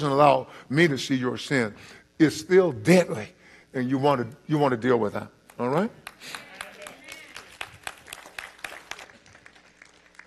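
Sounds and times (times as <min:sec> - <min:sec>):
speech: 0:00.0 - 0:06.4
scattered audience applause: 0:06.0 - 0:10.2.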